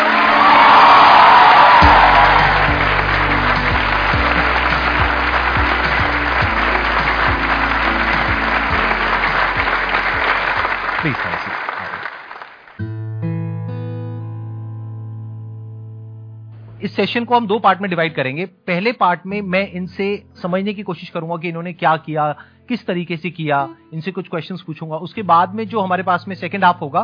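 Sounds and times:
crowd cheering and whooping: 0.0 - 11.2
upbeat music track: 0.0 - 11.5
crowd applauding: 0.0 - 12.8
speech: 17.0 - 27.0.

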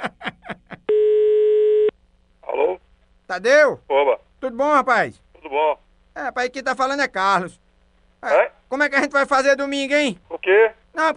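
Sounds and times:
telephone ringback tone as a call is placed: 0.9 - 1.9
speech: 3.3 - 7.6, 8.2 - 11.1.

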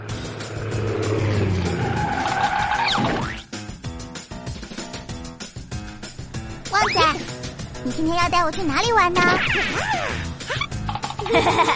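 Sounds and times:
car engine roaring: 0.0 - 3.0
car tires screeching in a skid while braking hard: 0.0 - 3.5
speech: 7.9 - 10.6, 11.3 - 11.7.

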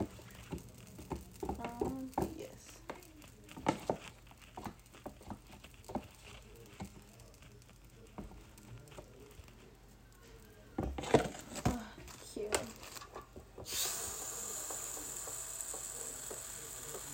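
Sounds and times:
waffle batter sizzling in waffle maker: 0.0 - 17.1.

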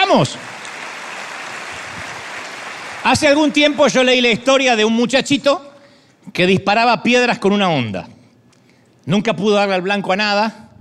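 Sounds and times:
audience clapping: 0.0 - 3.9
speech: 0.1 - 0.6, 3.1 - 5.7, 6.3 - 8.1, 9.0 - 10.6.

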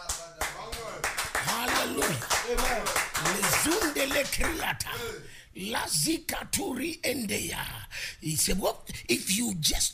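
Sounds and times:
audience clapping: 0.0 - 4.7
speech: 1.9 - 9.9.

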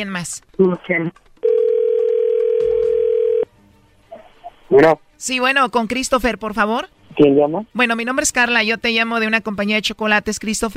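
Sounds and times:
speech: 0.0 - 1.3, 4.7 - 10.7
telephone ringback tone on an outgoing call: 1.4 - 3.5.

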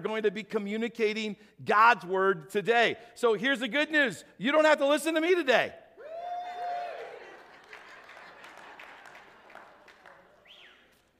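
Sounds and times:
speech: 0.0 - 5.8
audience cheering: 6.0 - 10.9
audience applause: 6.4 - 10.8.

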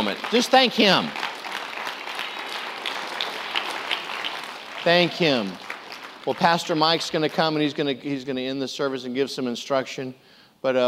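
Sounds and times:
audience clapping: 0.0 - 7.8
speech: 0.1 - 1.2, 4.8 - 5.6, 6.2 - 10.8.

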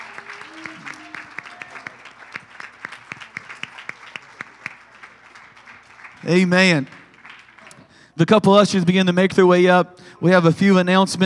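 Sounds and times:
audience applauding: 0.0 - 8.1
speech: 6.2 - 7.0, 8.2 - 11.2.

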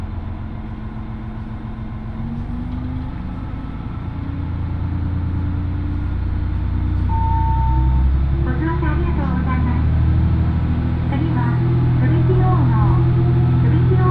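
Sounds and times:
Oito Line train engine rumble: 0.0 - 14.0
brief high tone: 7.1 - 8.2.

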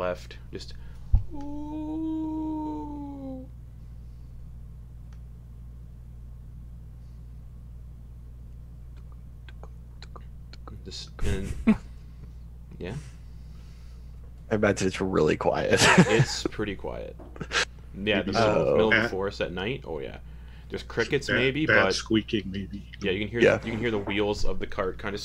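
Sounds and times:
speech: 0.0 - 2.2, 10.9 - 11.9, 14.5 - 25.2
quiet low hum: 0.0 - 25.2
person imitating a wolf howl: 1.3 - 3.5
laughter: 15.7 - 16.5.

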